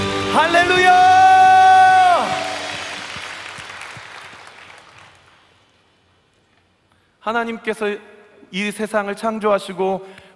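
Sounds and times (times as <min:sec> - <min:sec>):
speech: 0:00.4 - 0:01.0, 0:07.3 - 0:10.2
audience applauding: 0:00.6 - 0:05.8.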